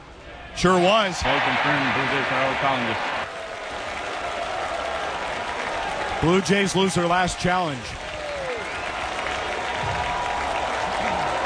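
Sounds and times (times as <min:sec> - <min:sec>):
speech: 0:00.6 - 0:03.1, 0:06.2 - 0:08.0
large stadium crowd cheering and clapping: 0:01.0 - 0:11.4.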